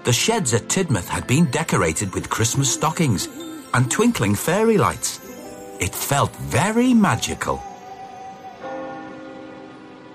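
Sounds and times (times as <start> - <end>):
speech: 0.0 - 5.2, 5.8 - 7.7
town clock bell chiming midnight: 1.3 - 10.0.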